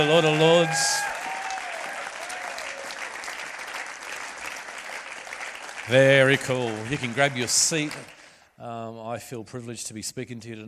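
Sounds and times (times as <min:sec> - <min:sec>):
speech: 0:00.0 - 0:01.0, 0:05.9 - 0:10.6
audience applause at a religious gathering: 0:00.0 - 0:08.4.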